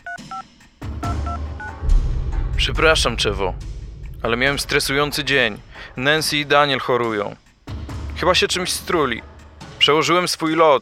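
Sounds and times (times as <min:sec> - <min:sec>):
phone number dialed with touch-tone beeps: 0:00.0 - 0:01.4
steady low rumble: 0:01.7 - 0:08.8
speech: 0:02.6 - 0:07.4, 0:08.2 - 0:10.8.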